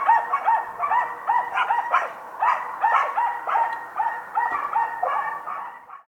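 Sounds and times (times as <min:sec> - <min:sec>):
chorus of dogs barking and yelping: 0:00.0 - 0:06.0.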